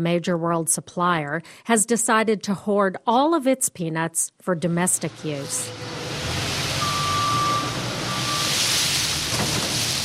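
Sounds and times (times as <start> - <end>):
speech: 0.0 - 6.0
front loader diesel engine rumbling in peanut storage: 5.0 - 10.0
reversing alarm tones: 6.7 - 8.8.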